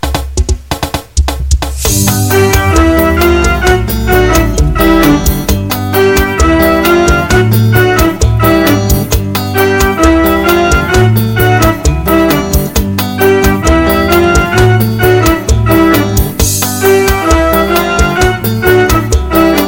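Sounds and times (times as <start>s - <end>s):
dragging groove: 0.0s - 19.6s.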